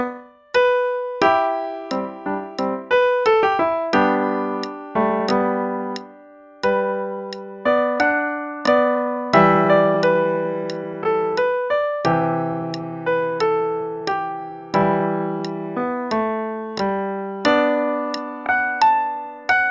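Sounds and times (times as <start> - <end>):
piano: 0.0 - 19.6.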